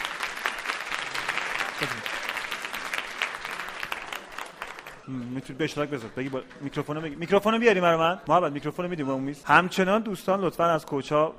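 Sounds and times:
audience applause: 0.0s - 7.2s
speech: 1.8s - 2.2s, 5.1s - 11.3s.

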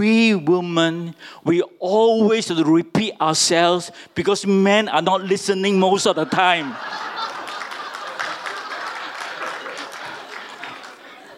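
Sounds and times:
speech: 0.0s - 7.1s
laughter: 6.0s - 11.3s
women clapping their hands: 7.1s - 11.3s.

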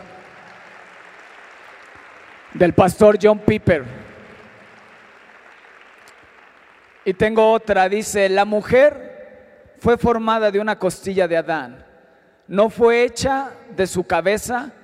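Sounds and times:
audience applause: 0.0s - 7.3s
speech: 2.5s - 4.1s, 7.1s - 9.1s, 9.8s - 11.9s, 12.5s - 14.8s.

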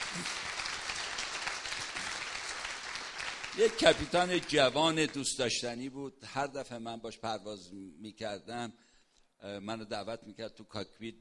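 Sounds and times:
audience applause in memory of a late airline captain: 0.0s - 4.8s
speech: 3.6s - 11.1s.

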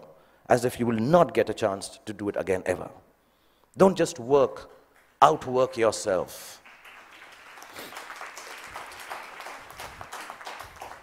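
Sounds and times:
speech: 0.5s - 3.1s, 3.8s - 6.6s
sparse clapping from a small audience of parents: 6.6s - 11.0s.

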